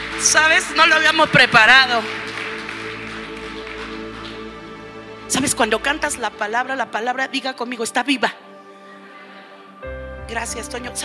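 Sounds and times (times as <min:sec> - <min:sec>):
audience applause: 0:00.0 - 0:05.5
speech: 0:00.2 - 0:02.3, 0:05.3 - 0:08.4, 0:10.3 - 0:11.0.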